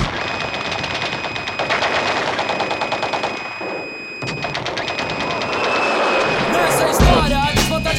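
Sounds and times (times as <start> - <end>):
bursts of gunfire: 0.0 - 7.8.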